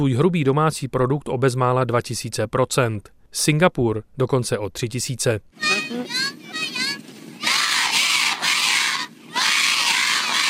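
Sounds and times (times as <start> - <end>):
speech: 0.0 - 6.4
village children cheering a welcome: 5.6 - 10.4.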